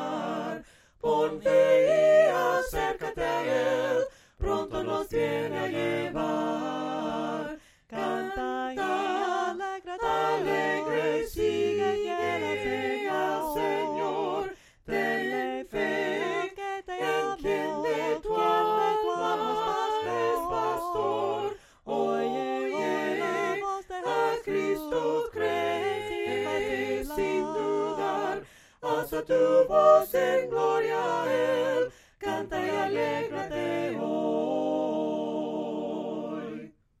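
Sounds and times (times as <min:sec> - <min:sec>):
soprano singing a cappella hymn: 0:00.0 - 0:36.7.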